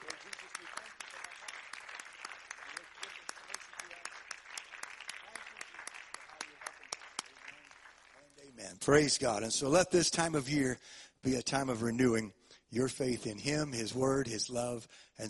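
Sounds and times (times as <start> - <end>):
audience clapping in thanksgiving: 0.0 - 9.1
speech: 8.6 - 15.2.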